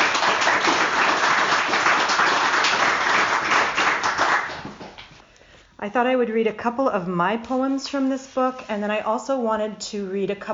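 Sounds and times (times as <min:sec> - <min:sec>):
audience applause: 0:00.0 - 0:04.9
speech: 0:05.8 - 0:10.5.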